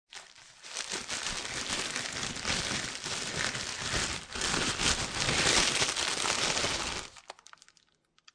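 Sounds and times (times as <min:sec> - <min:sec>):
bread grabbed out of a plastic bread bag, foley: 0:00.1 - 0:08.3.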